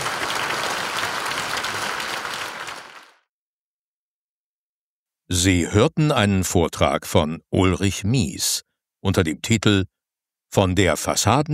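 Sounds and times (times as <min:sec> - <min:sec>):
hearty audience applause: 0:00.0 - 0:03.3
speech: 0:05.3 - 0:11.5.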